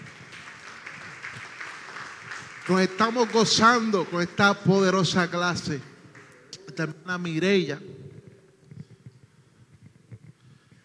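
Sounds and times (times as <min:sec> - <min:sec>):
church congregation applauding: 0:00.0 - 0:07.4
speech: 0:02.7 - 0:05.9, 0:06.8 - 0:07.9.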